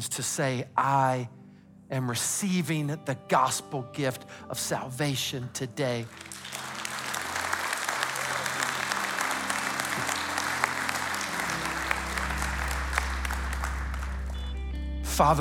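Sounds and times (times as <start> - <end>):
speech: 0.0 - 6.5, 15.2 - 15.3
church audience clapping: 6.0 - 14.7.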